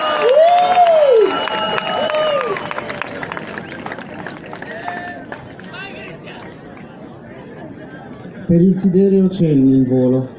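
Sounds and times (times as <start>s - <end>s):
loud rising-and-falling whoop: 0.0s - 3.0s
crowd applauding and cheering: 0.0s - 6.3s
speech: 8.5s - 10.3s.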